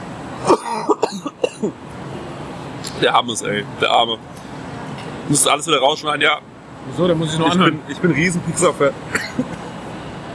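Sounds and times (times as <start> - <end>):
person coughing from a chili stuck in the throat: 0.4 - 1.7, 9.1 - 9.6
speech: 1.2 - 1.9, 3.0 - 4.3, 5.3 - 9.5.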